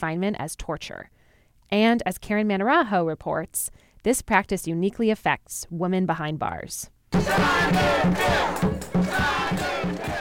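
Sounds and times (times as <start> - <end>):
speech: 0.0 - 10.1
crowd gathered at a protest rally: 7.2 - 10.1.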